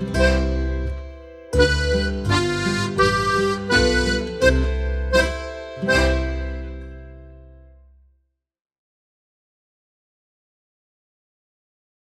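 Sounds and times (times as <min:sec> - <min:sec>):
Boarischer folk dance music: 0:00.0 - 0:07.6.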